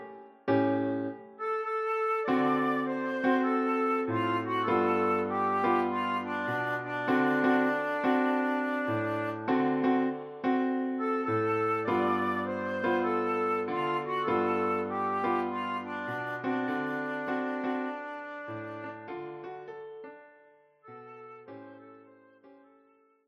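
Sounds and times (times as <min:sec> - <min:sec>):
flute: 0:00.6 - 0:19.7, 0:20.8 - 0:23.2.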